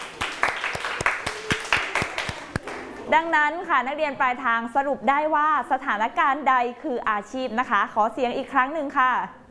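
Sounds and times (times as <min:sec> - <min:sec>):
group of children clapping: 0:00.0 - 0:03.0
speech: 0:03.1 - 0:09.4.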